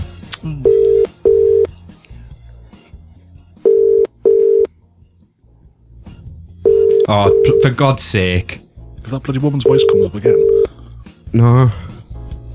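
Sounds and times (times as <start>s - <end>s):
speech: 0.4s - 0.7s, 7.1s - 10.7s, 11.3s - 11.8s
telephone ringing tone: 0.7s - 1.7s, 3.7s - 4.7s, 6.7s - 7.8s, 9.7s - 10.7s.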